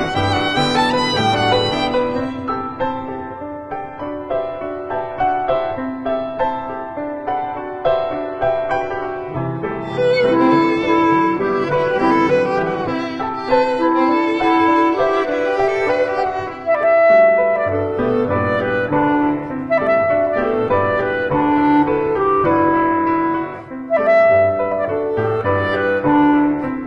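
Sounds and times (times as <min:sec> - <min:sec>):
violin: 0:00.0 - 0:03.6, 0:08.1 - 0:26.8
clarinet: 0:00.0 - 0:26.8
piano: 0:00.0 - 0:26.8.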